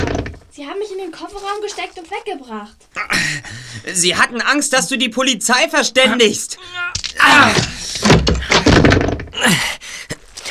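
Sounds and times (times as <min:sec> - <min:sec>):
door being broken open: 0:00.0 - 0:00.4, 0:06.8 - 0:09.6
speech: 0:00.6 - 0:08.5, 0:09.4 - 0:09.8.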